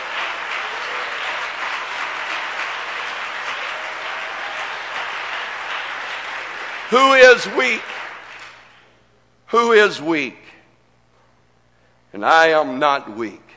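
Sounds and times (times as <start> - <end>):
audience hand clapping: 0.0 - 8.9
speech: 6.9 - 8.0, 9.5 - 10.4, 12.1 - 13.4.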